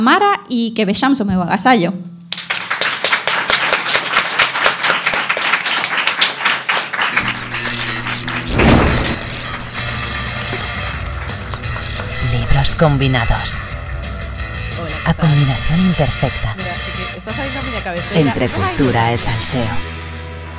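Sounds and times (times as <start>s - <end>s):
speech: 0.0s - 2.1s, 12.6s - 13.7s, 15.1s - 16.6s, 17.3s - 19.9s
audience applause: 2.4s - 12.1s
music with a low booming beat: 7.2s - 14.8s.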